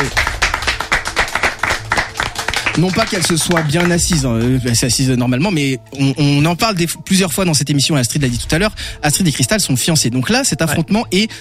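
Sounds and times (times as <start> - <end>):
game show audience clapping for a contestant's entrance: 0.0 - 5.1
speech: 2.8 - 11.4.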